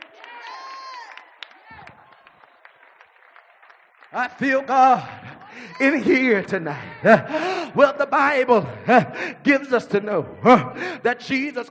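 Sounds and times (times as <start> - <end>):
audience clapping: 0.0 - 6.7
speech: 4.1 - 11.6
laughter: 4.2 - 11.4.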